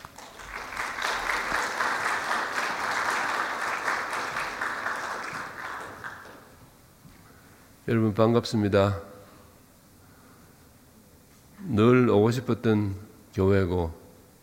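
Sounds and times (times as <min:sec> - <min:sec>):
audience applause welcoming guests: 0:00.0 - 0:06.6
speech: 0:07.9 - 0:09.1, 0:11.8 - 0:14.0.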